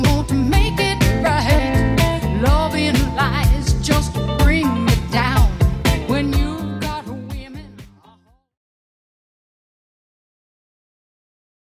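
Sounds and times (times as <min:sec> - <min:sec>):
70s music loop at 124 bpm: 0:00.0 - 0:08.0.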